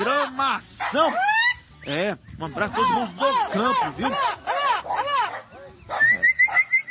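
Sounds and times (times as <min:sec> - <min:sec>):
turquoise-fronted amazon parrot call: 0:00.0 - 0:01.7, 0:02.6 - 0:06.8
speech: 0:00.3 - 0:04.6.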